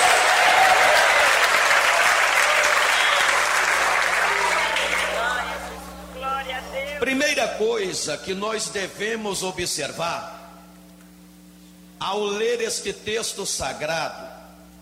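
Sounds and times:
loud sustained applause from a large crowd: 0.0s - 6.4s
scattered shouts of praise: 0.0s - 6.8s
speech: 7.6s - 10.4s, 12.0s - 14.4s.

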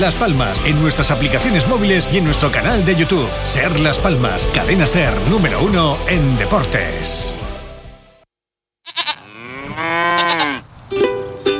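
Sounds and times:
speech: 0.0s - 7.4s
cow mooing: 8.9s - 10.6s.

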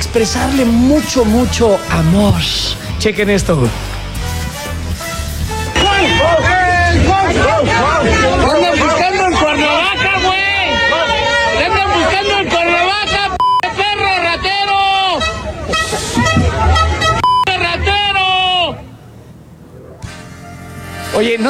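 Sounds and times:
speech: 0.0s - 4.0s, 21.2s - 21.4s
crowd shouting at a politician: 0.0s - 21.4s
laughter: 5.6s - 21.4s.

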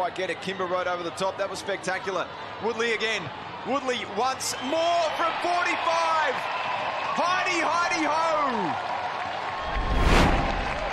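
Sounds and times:
speech: 0.0s - 9.0s
Dogs fans cheering at Winton Oval: 0.0s - 10.9s
crowd clapping: 5.3s - 10.9s.

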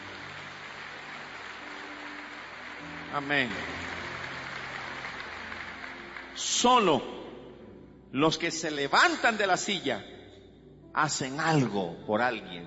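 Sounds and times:
applause: 0.0s - 7.1s
speech: 3.1s - 3.9s, 6.4s - 7.2s, 8.1s - 10.2s, 11.0s - 12.6s.

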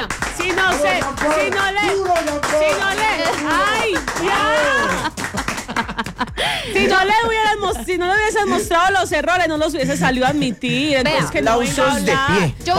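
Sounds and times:
applause: 0.0s - 6.2s
laughter: 2.8s - 9.0s
speech: 6.6s - 12.7s.

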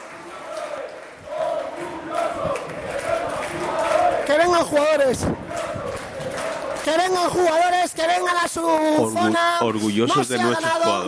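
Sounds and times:
stadium crowd chanting a player's name: 0.0s - 6.9s
speech: 4.3s - 5.4s, 6.9s - 11.0s.

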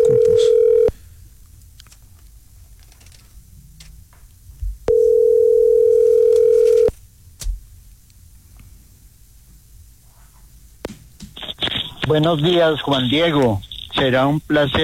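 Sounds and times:
telephone ringing tone while waiting: 0.0s - 0.9s, 4.9s - 6.9s
speech: 12.1s - 14.8s.

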